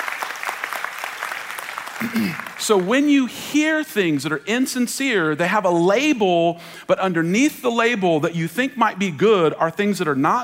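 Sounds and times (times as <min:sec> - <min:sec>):
audience clapping: 0:00.0 - 0:03.4
speech: 0:02.0 - 0:10.4.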